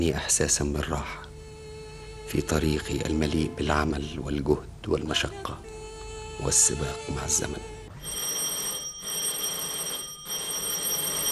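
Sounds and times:
speech: 0.0 - 1.2, 2.3 - 5.8, 6.4 - 7.7
doorbell ringing at the front door: 8.0 - 11.3.

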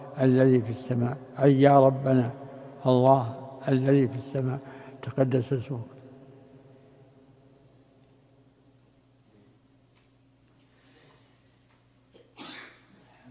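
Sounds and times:
low hum: 0.0 - 13.2
speech: 0.2 - 5.9
sneeze: 12.2 - 13.2.

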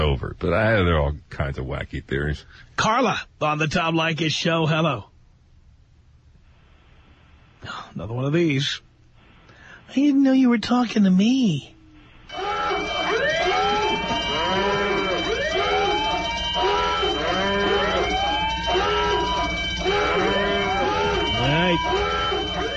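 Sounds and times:
speech: 0.1 - 5.1, 7.6 - 8.9, 9.9 - 13.3
cows mooing: 12.3 - 22.7.

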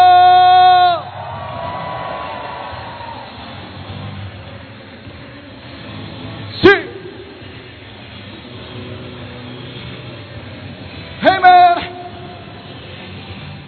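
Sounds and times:
audience shouting and cheering with joy: 0.0 - 3.9.

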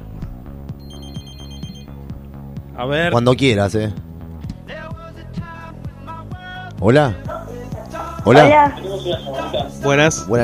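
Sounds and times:
studio telephone ringing with an incoming call to a radio show: 0.8 - 2.0
speech: 2.8 - 4.1, 6.8 - 7.3, 8.2 - 10.4.

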